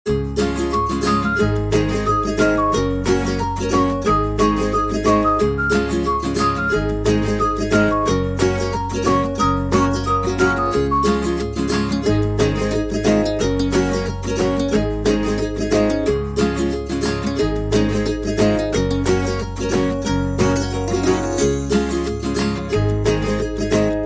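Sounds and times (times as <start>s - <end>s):
happy summer background music: 0.1s - 24.0s.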